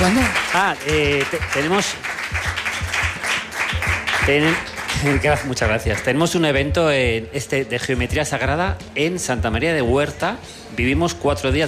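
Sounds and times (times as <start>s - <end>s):
speech: 0.0s - 2.5s, 4.2s - 11.6s
audience applause: 0.0s - 5.6s.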